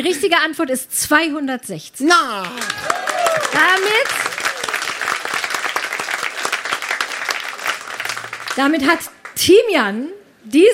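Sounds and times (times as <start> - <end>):
speech: 0.0 - 4.3, 8.6 - 10.7
excited voices cheering: 2.2 - 5.4
group applauding: 2.2 - 9.5.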